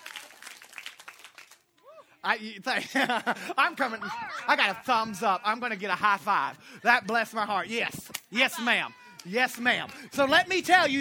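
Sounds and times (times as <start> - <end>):
audience clapping: 0.0 - 1.9, 8.6 - 10.6
speech: 2.2 - 10.9
laughter: 2.3 - 10.9.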